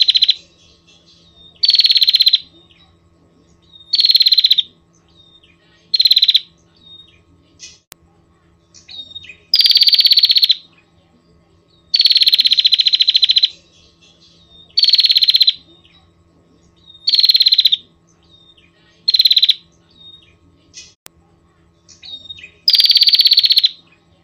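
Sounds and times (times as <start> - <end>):
Prinia rattling trills: 0.0 - 7.9, 8.6 - 21.0, 21.7 - 24.2.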